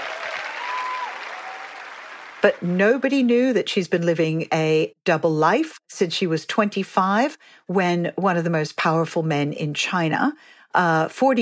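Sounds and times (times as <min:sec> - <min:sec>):
audience applause: 0:00.0 - 0:02.6
speech: 0:02.4 - 0:11.4.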